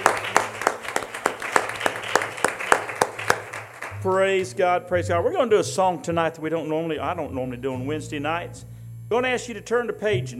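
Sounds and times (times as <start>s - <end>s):
audience hand clapping: 0.0s - 4.5s
speech: 4.0s - 10.3s.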